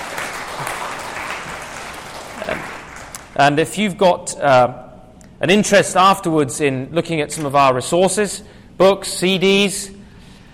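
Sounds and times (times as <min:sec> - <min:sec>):
audience applause: 0:00.0 - 0:03.4
speech: 0:03.4 - 0:04.8, 0:05.4 - 0:10.0.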